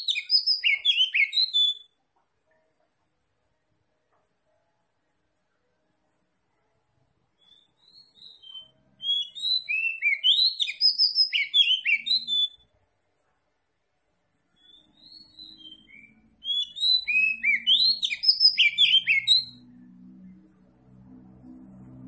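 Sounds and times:
Oriental magpie-robin whistling song: 0.0 - 1.9, 7.4 - 12.7, 14.5 - 19.7.

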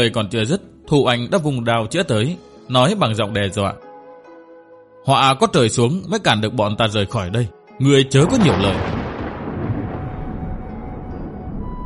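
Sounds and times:
speech: 0.0 - 3.8, 5.0 - 9.1
deep steady rumble of thunder: 8.2 - 11.8
very heavy rain pouring down: 8.2 - 11.8.

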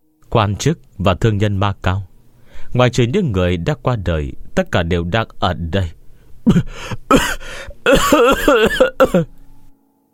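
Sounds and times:
speech: 0.3 - 2.1, 2.7 - 9.4
man coughing violently: 6.4 - 9.3.

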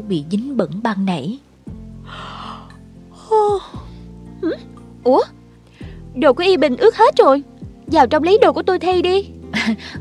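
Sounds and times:
speech: 0.0 - 1.5, 4.5 - 5.4, 6.2 - 9.9
long yawn: 2.1 - 4.0.

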